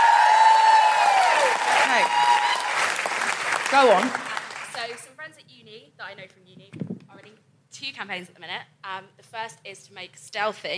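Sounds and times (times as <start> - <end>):
live audience round of applause: 0.0 - 5.0
speech: 3.7 - 4.2, 4.8 - 5.1, 5.8 - 6.6, 7.8 - 10.7.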